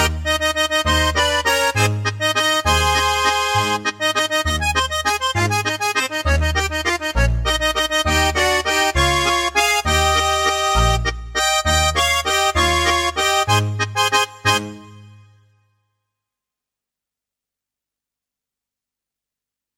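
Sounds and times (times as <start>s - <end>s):
accordion waltz in B flat: 0.0s - 15.6s.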